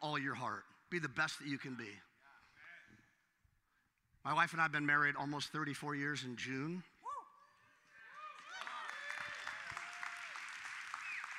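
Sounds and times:
speech: 0.1 - 2.1, 4.2 - 6.9
audience clapping: 8.0 - 11.3.

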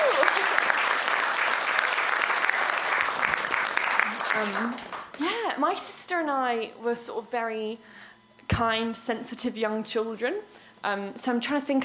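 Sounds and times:
applause: 0.0 - 5.3
speech: 4.4 - 11.8.

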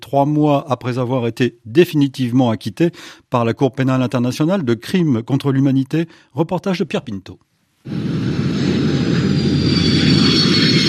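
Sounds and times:
speech: 0.1 - 8.1
Airbus airliner landing gear hitting runway at Abidjan airport: 7.9 - 10.8.

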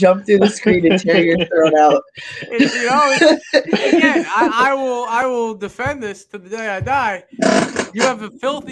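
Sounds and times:
speech: 0.0 - 8.7
woman sighing and chuckling while savoring a cold drink: 0.3 - 4.7.

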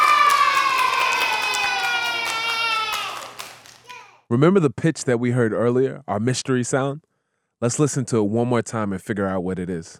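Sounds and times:
hands clapping: 0.0 - 4.1
young audience cheering with high voices: 0.0 - 4.2
speech: 4.3 - 9.9.

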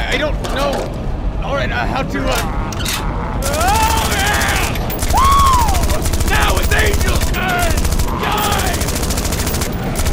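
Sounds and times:
speech: 0.1 - 3.9
rapid rifle gunfire: 3.4 - 10.1.

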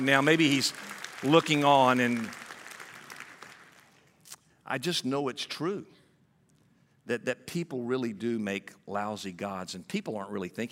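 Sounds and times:
speech: 0.0 - 2.4, 4.7 - 6.0, 7.1 - 10.7
audience clapping: 0.0 - 4.2.

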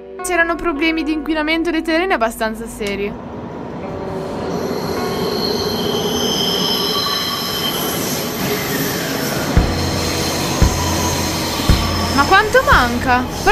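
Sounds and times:
metro train rumbling: 0.0 - 13.5
speech: 0.2 - 3.3, 12.2 - 13.5
high-pitched metro wheel squeal: 4.5 - 13.5.

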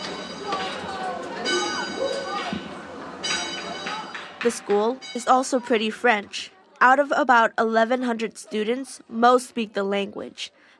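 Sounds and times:
school bell sounding like San Francisco cable car bell: 0.0 - 6.1
speech: 4.4 - 10.6.

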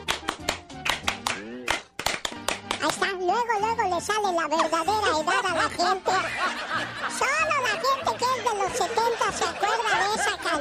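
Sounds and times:
hand clapping: 0.0 - 3.2
speech: 2.8 - 10.6
laughter: 4.6 - 10.6.

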